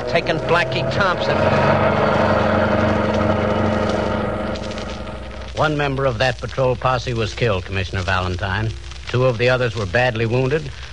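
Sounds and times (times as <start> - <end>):
getaway car engine revving: 0.0 - 6.2
speech: 0.1 - 2.6, 5.6 - 10.9.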